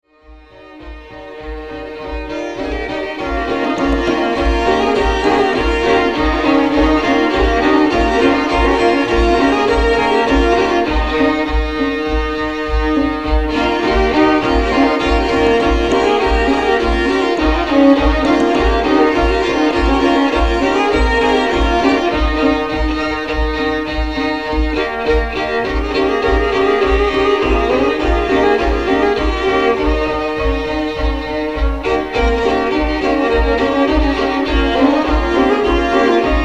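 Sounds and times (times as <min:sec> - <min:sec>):
violin trio: 0:00.0 - 0:36.4.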